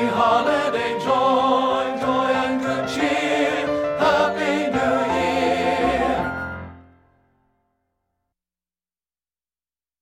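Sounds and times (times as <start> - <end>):
tenor singing: 0.0 - 6.6.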